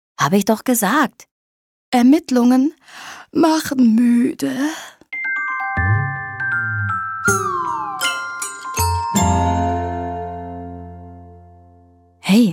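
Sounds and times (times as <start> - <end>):
speech: 0.2 - 1.3, 1.9 - 5.0
three-note soft chime music: 5.2 - 12.2.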